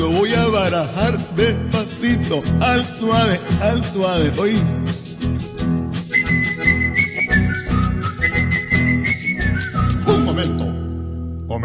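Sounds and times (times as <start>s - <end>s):
speech: 0.0s - 5.0s
rhythmic musical backing: 0.0s - 11.1s
person whistling a high-pitched tune: 6.1s - 10.8s.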